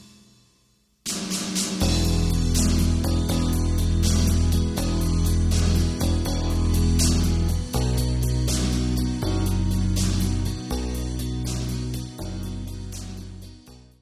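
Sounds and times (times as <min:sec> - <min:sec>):
backing track in E without lead guitar: 0:00.0 - 0:14.0.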